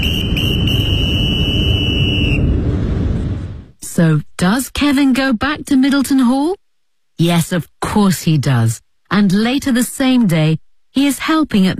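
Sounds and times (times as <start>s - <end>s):
high-pitched electronic buzzer tone: 0.0s - 2.4s
loud low rumble: 0.0s - 3.8s
speech: 4.8s - 6.6s, 7.2s - 11.7s.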